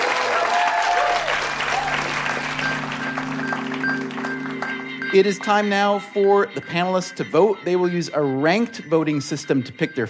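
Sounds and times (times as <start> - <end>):
audience applause: 0.0 - 5.1
speech: 5.1 - 10.0.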